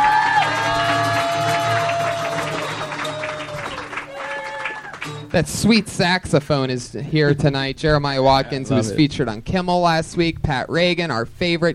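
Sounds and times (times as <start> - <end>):
audience clapping and cheering: 0.0 - 5.9
speech: 5.3 - 11.7.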